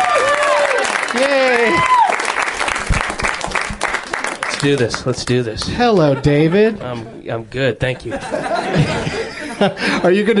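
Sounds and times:
studio audience applause welcoming a guest: 0:00.0 - 0:05.2
speech: 0:04.6 - 0:10.3
laughter: 0:05.8 - 0:07.2, 0:07.8 - 0:10.3.

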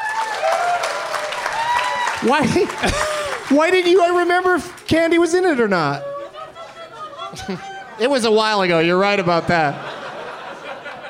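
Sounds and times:
faint whoops and cheers: 0:00.0 - 0:03.4
crowd clapping: 0:00.0 - 0:05.7
laughter: 0:02.2 - 0:03.6, 0:05.8 - 0:11.0
speech: 0:02.2 - 0:06.1, 0:07.3 - 0:09.9.

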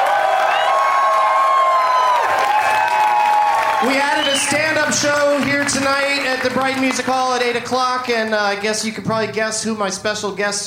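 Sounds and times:
excited crowd shouts and whoops: 0:00.0 - 0:04.9
large live audience applauding: 0:00.0 - 0:08.6
speech: 0:03.8 - 0:10.6.

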